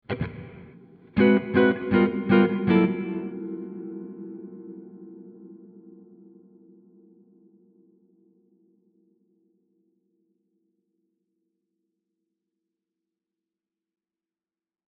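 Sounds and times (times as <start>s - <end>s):
compressed and expanded guitar chords with AR envelope: 0.0s - 7.8s.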